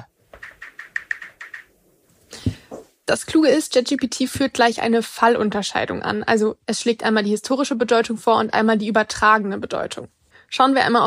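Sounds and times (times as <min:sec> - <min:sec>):
typing a query on a computer keyboard: 0:00.4 - 0:01.7
speech: 0:02.5 - 0:11.0.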